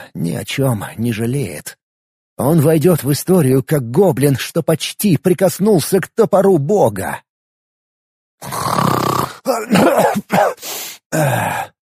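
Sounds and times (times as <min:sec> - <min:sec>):
speech: 0:00.1 - 0:01.8, 0:02.4 - 0:07.3, 0:08.4 - 0:11.8
voice imitating loud snoring: 0:08.4 - 0:09.8.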